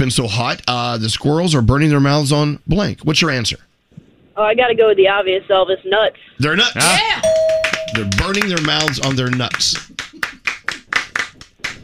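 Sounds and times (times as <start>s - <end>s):
speech: 0.0s - 3.7s, 4.4s - 9.9s
hands clapping: 7.2s - 11.8s.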